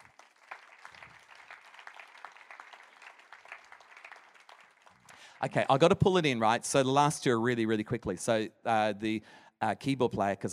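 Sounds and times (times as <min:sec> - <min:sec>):
audience hand clapping: 0:00.0 - 0:06.3
speech: 0:05.4 - 0:10.5.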